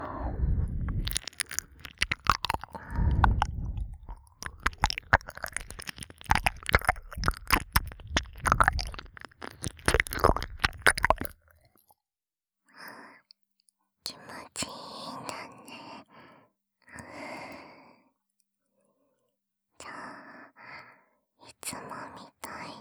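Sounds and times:
ASMR ear licking sounds: 0.2s - 11.4s.

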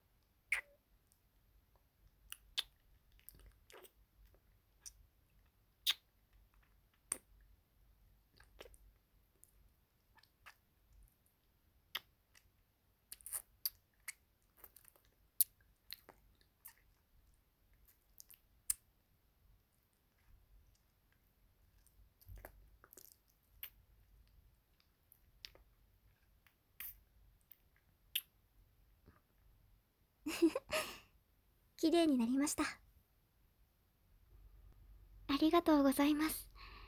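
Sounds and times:
wet mouth clicks and smacks from licking salt off a face in ASMR roleplay: 0.5s - 0.7s, 2.3s - 4.0s, 5.8s - 7.3s, 11.9s - 12.5s, 13.1s - 17.0s, 21.8s - 23.8s, 25.4s - 25.7s, 26.4s - 28.4s
speech: 30.4s - 30.6s, 31.8s - 32.8s, 35.4s - 36.5s.

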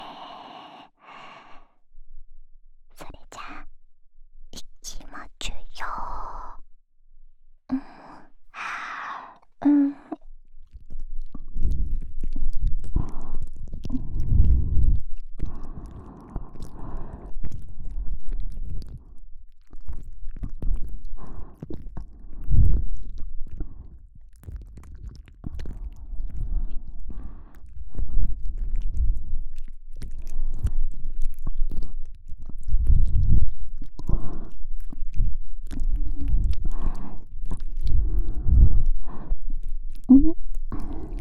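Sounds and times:
ASMR ear licking loop in the left ear: 8.7s - 41.1s.

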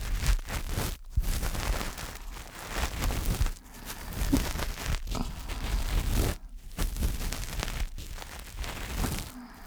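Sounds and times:
ASMR ear cleaning sounds in the left ear for sleep: 0.1s - 9.6s.

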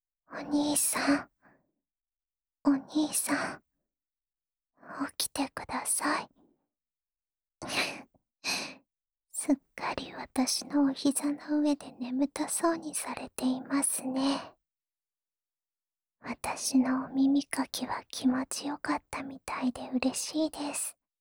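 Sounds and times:
ASMR sleep voice: 0.4s - 1.2s, 2.7s - 3.5s, 5.0s - 6.2s, 9.4s - 14.5s, 16.3s - 20.9s.

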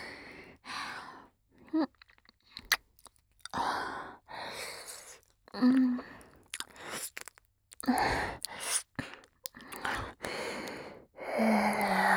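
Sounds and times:
oral sex sounds: 1.7s - 12.1s
ear licking: 2.0s - 3.6s, 4.8s - 10.8s
full body licking: 4.7s - 10.8s.

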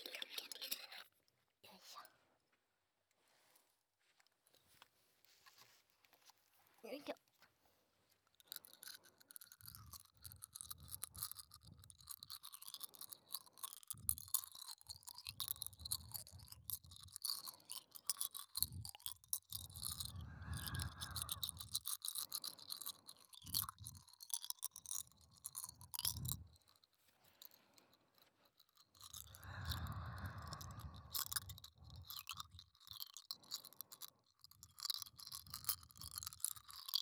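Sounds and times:
soft whispering: 0.0s - 2.4s, 20.0s - 21.7s, 29.3s - 32.1s
teeth crunching hard candy: 8.3s - 37.0s.

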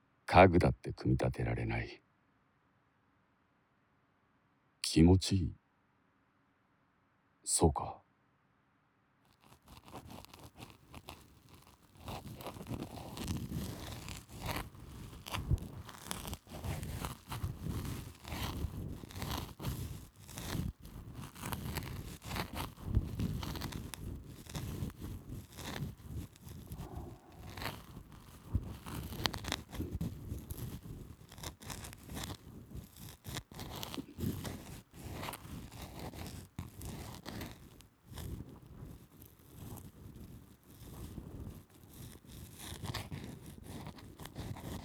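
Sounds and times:
speech: 0.4s - 2.0s, 4.8s - 5.6s, 7.4s - 8.0s
ear pick scratching dry earwax: 9.3s - 44.8s.

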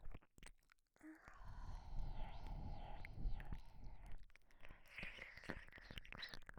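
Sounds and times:
breathy voice in right ear: 1.0s - 5.8s.

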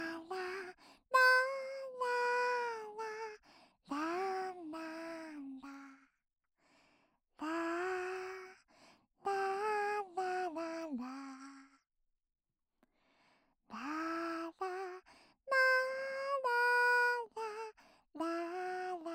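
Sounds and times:
lullaby without reverb: 0.0s - 6.0s, 7.4s - 8.6s, 9.2s - 11.8s, 13.7s - 19.1s.

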